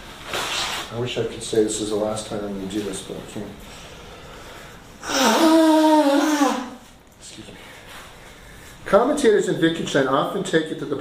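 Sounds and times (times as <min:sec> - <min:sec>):
speech: 0:00.9 - 0:03.8, 0:08.9 - 0:10.9
nose blowing: 0:05.0 - 0:06.9.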